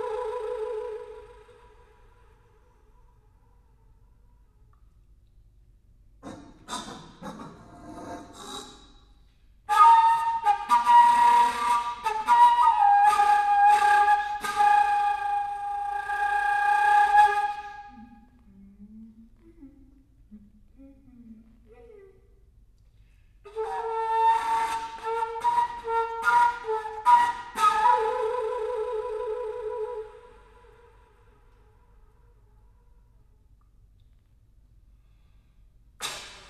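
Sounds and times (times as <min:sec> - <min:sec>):
alto flute: 0:00.0 - 0:03.6, 0:09.7 - 0:18.7, 0:23.5 - 0:32.6.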